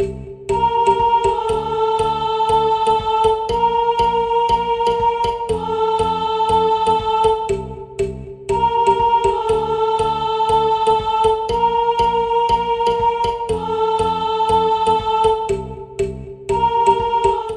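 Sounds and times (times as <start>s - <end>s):
first voice singing an interlude: 0.5s - 7.7s, 8.5s - 15.7s, 16.5s - 17.5s.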